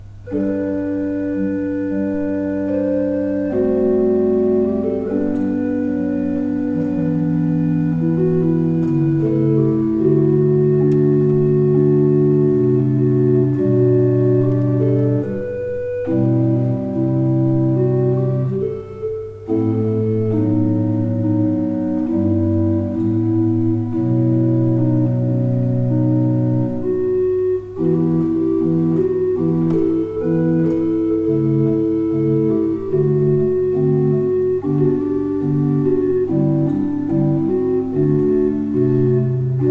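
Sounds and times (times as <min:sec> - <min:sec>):
positive organ: 0:00.0 - 0:39.6.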